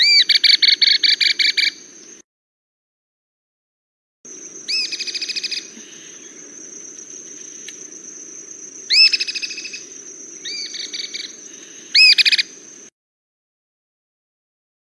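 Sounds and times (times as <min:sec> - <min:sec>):
cliff flycatcher calling: 0:00.0 - 0:02.2, 0:04.3 - 0:12.9.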